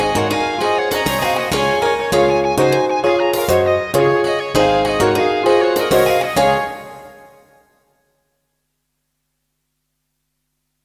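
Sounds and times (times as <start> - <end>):
uplifting fusion music: 0.0 - 7.5.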